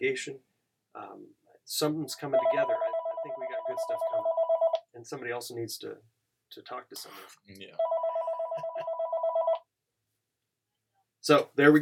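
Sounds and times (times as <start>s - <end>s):
speech: 0.1s - 4.4s, 5.0s - 7.9s, 11.2s - 11.8s
telephone ringing: 2.4s - 4.8s, 7.8s - 9.6s.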